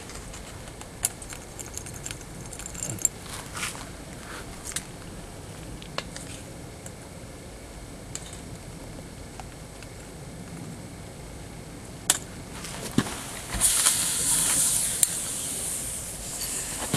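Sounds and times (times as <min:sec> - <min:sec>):
sharp crackles and pops: 0:00.0 - 0:16.9
water sizzling on molten lead: 0:13.5 - 0:16.8.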